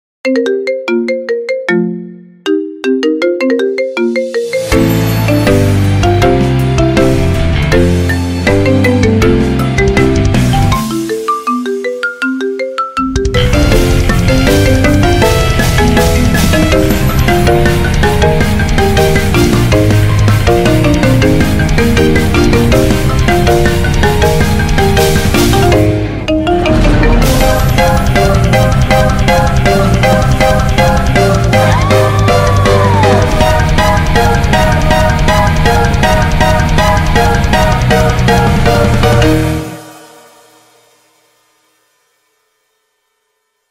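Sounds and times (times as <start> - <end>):
marimba: 0.2 - 40.3.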